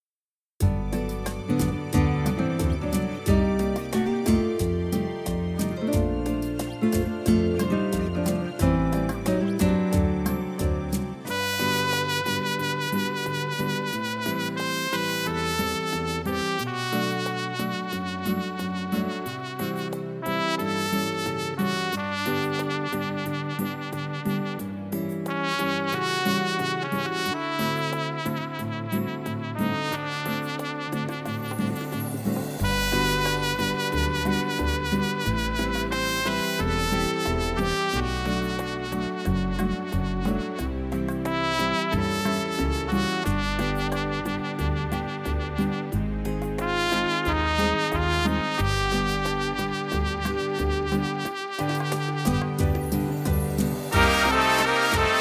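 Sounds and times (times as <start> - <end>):
instrumental music: 0.6 - 55.1.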